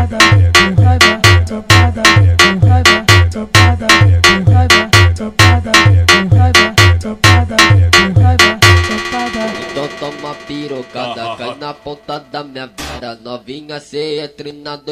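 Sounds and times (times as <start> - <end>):
funk rave automotivo music: 0.0 - 11.8.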